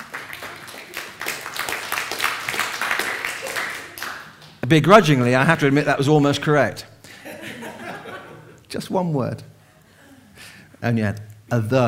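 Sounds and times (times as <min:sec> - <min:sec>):
audience clapping: 0:00.0 - 0:04.8
speech: 0:04.7 - 0:06.9, 0:08.7 - 0:09.5, 0:10.8 - 0:11.8
laughter: 0:07.1 - 0:08.6.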